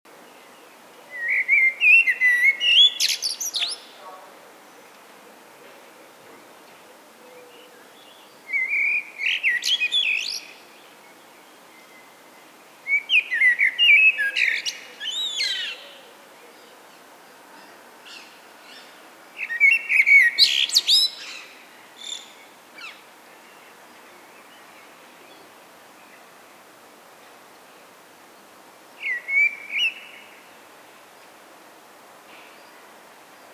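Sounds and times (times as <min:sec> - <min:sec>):
common blackbird singing: 0:00.4 - 0:04.0, 0:07.3 - 0:10.6, 0:12.9 - 0:16.7, 0:18.1 - 0:24.7, 0:29.0 - 0:30.4.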